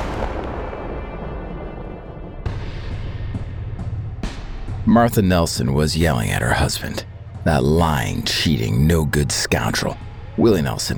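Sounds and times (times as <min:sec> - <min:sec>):
shotgun blast: 0:00.0 - 0:02.8
speech: 0:04.9 - 0:10.9.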